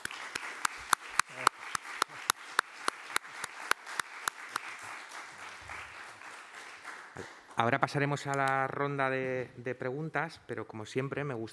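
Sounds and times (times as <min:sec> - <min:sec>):
audience applause: 0:00.0 - 0:07.6
speech: 0:07.6 - 0:11.5.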